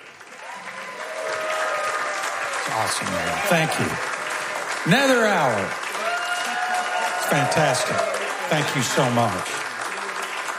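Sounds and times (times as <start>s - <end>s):
audience applause: 0.0s - 10.5s
whistles or cheers: 0.3s - 4.0s, 6.0s - 9.0s
speech: 2.7s - 4.1s, 4.8s - 5.8s, 7.3s - 9.6s.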